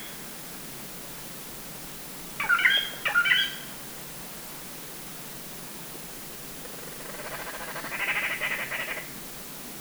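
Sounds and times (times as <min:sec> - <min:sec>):
Grey Treepie ssp sinica call: 0:02.4 - 0:03.8, 0:07.1 - 0:09.1.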